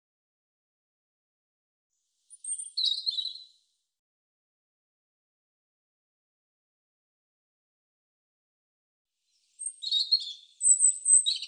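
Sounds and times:
European robin singing: 2.3 - 3.6, 9.3 - 11.4.

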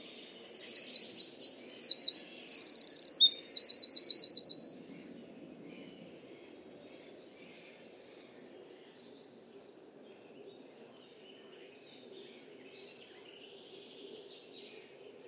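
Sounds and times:
bird song: 0.0 - 15.2.

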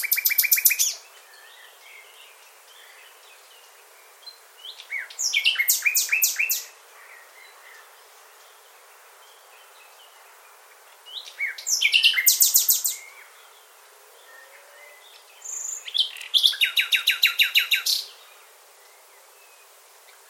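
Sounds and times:
bird calling with thin whistle and sharp downslurred chirps: 0.0 - 1.7, 4.7 - 6.7, 11.1 - 13.3, 14.3 - 18.1.

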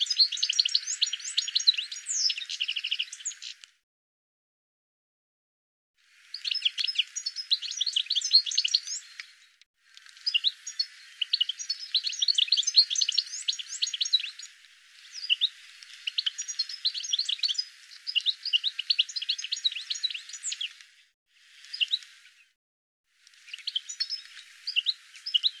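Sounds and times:
bird giving quick high chirps and short sweeping notes: 0.0 - 3.6, 6.3 - 9.6, 10.2 - 20.8, 23.3 - 25.5.

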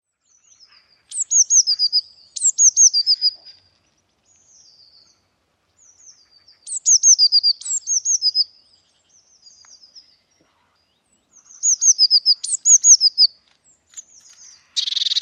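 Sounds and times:
Eurasian blue tit calls: 0.5 - 3.7, 5.9 - 8.5, 11.3 - 15.2.

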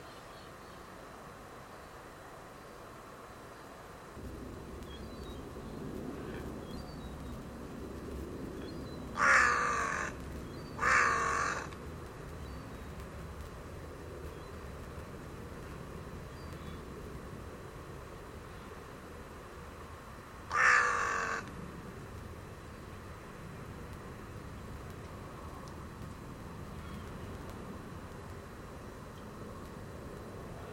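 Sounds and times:
hiss: 0.0 - 30.7
bird cawing: 9.1 - 11.8, 20.5 - 21.5.

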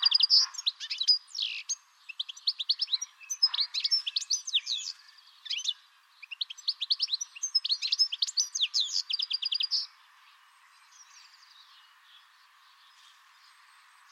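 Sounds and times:
bird chattering calls with buzzy trills and sharp chirps: 0.0 - 9.9.

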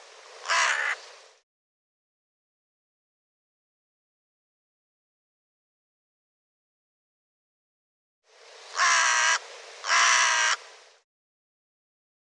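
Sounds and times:
harsh bird caws: 0.4 - 1.0, 8.7 - 10.6.

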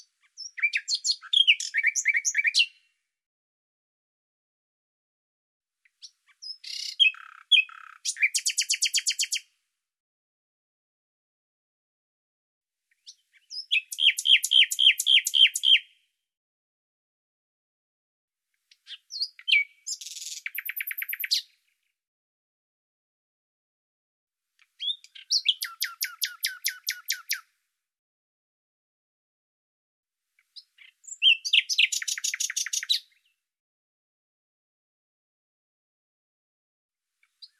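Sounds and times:
bird song with trill: 0.0 - 3.0, 5.9 - 9.6, 13.0 - 16.1, 18.7 - 21.7, 24.6 - 27.5, 30.4 - 33.4, 37.2 - 37.5.

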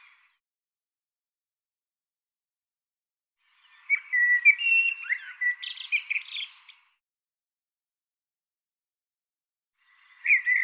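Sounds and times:
bird twittering with sweeping notes: 3.6 - 7.0.

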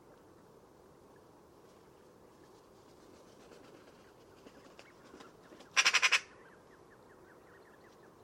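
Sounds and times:
bird calling grating squawks: 5.8 - 6.3.

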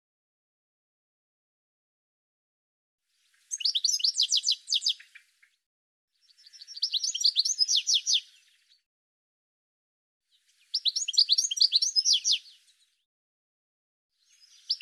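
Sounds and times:
bird chirping: 3.2 - 5.6, 6.2 - 8.8, 10.3 - 13.1, 14.2 - 14.7.

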